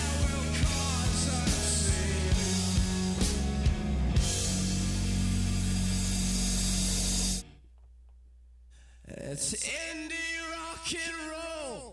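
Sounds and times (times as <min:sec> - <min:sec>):
sustained sung vocal lines with delay echo: 0:00.0 - 0:03.0, 0:09.0 - 0:11.9
loud dense rock track: 0:00.0 - 0:07.6.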